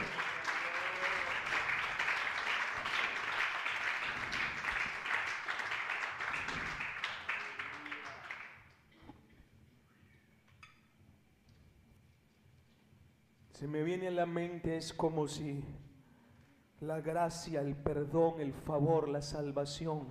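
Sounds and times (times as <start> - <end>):
audience applause: 0.0 - 8.6
speech: 13.6 - 15.8, 16.8 - 20.0.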